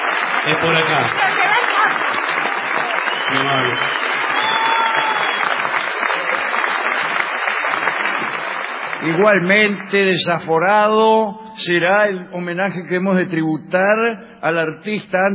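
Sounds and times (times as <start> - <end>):
large audience applause and cheering: 0.0 - 10.1
speech: 0.4 - 1.4, 3.3 - 4.0, 9.0 - 15.3
voice rising through crowd noise: 3.2 - 5.2.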